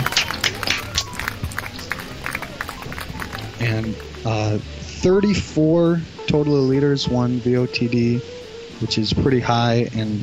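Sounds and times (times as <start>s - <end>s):
short round of applause: 0.0s - 4.2s
speech: 3.6s - 10.2s.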